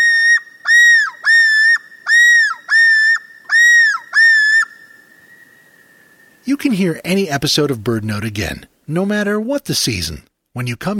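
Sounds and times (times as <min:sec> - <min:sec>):
common loon male yodel call: 0:00.0 - 0:04.8
speech: 0:06.5 - 0:10.9.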